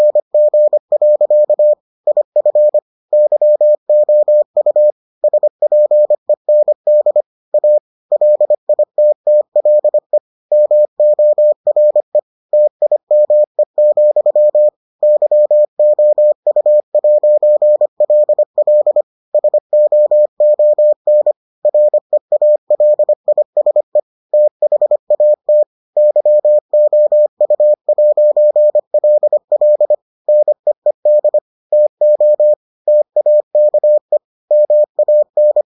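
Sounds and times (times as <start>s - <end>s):
morse code beeps: 0.0s - 35.6s.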